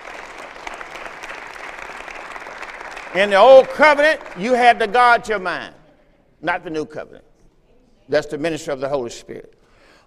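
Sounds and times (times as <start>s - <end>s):
audience hand clapping: 0.0s - 5.2s
speech: 3.1s - 5.8s, 6.4s - 7.3s, 8.1s - 9.6s.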